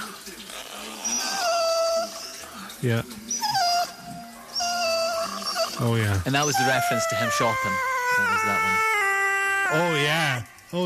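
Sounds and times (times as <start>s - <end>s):
auto-tuned dog whimpering: 0.6s - 2.5s, 3.3s - 10.8s
speech: 2.8s - 3.2s, 5.8s - 8.9s, 9.7s - 10.8s.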